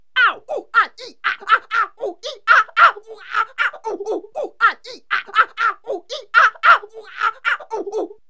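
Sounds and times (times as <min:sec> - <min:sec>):
cartoon yelling: 0:00.2 - 0:08.2.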